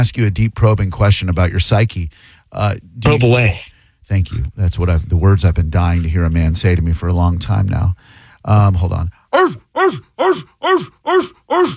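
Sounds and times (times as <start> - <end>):
speech: 0.0 - 11.7
dogs barking: 9.3 - 11.7.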